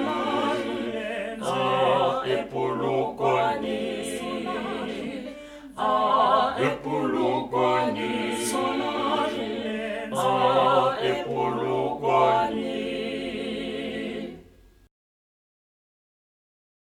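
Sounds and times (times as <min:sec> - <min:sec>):
alto tenor and bass voices singing: 0:00.0 - 0:14.5.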